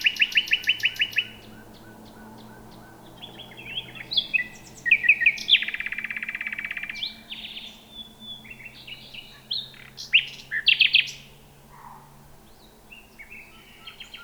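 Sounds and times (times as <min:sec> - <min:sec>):
common nightingale Luscinia megarhynchos: 0:00.0 - 0:11.3.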